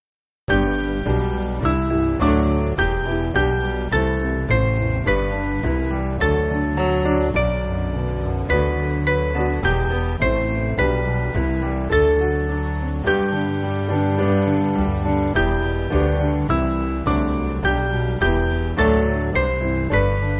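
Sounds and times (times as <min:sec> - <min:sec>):
church piano music: 0:00.5 - 0:20.3.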